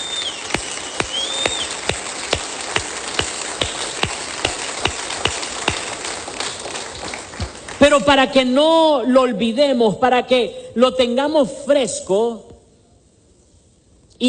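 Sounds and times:
audience applause: 0:00.0 - 0:07.8
speech: 0:07.9 - 0:12.5.

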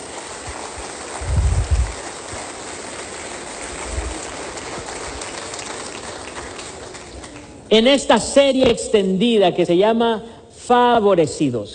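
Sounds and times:
audience applause: 0:00.0 - 0:07.7
speech: 0:07.7 - 0:11.7.

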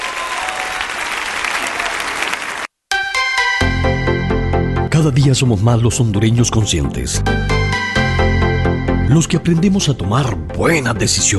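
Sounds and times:
crowd applause: 0:00.0 - 0:02.7
music: 0:02.9 - 0:11.3
speech: 0:05.0 - 0:07.6, 0:09.1 - 0:11.3.

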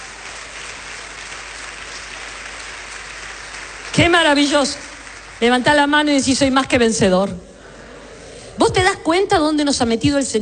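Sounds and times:
audience applause: 0:00.0 - 0:05.9
speech: 0:04.0 - 0:04.8, 0:05.4 - 0:07.5, 0:08.6 - 0:10.4.

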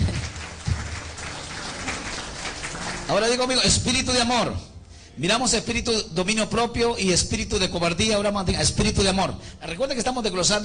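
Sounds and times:
audience applause: 0:00.0 - 0:03.5
speech: 0:03.1 - 0:10.6.

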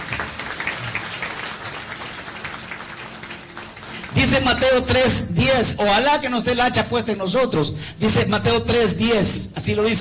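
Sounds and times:
audience applauding: 0:00.0 - 0:05.3
speech: 0:04.2 - 0:09.9.

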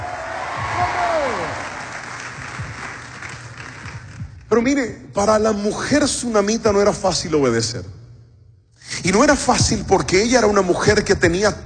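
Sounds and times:
audience shouting loudly together: 0:00.0 - 0:02.1
speech: 0:04.6 - 0:08.0, 0:09.0 - 0:11.6.

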